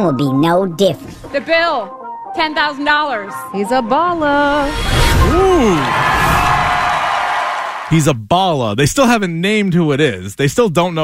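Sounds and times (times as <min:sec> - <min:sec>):
speech: 0:00.0 - 0:06.2, 0:07.9 - 0:11.0
crowd cheering at an arena event: 0:04.8 - 0:08.0
person whooping: 0:05.0 - 0:07.6.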